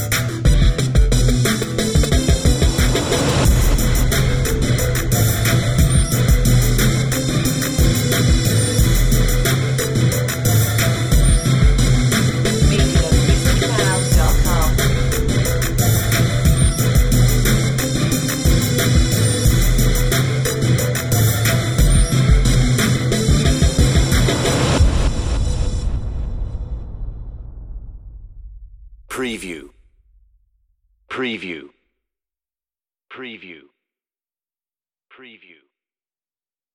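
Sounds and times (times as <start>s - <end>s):
twang instrumental: 0.5s - 29.6s.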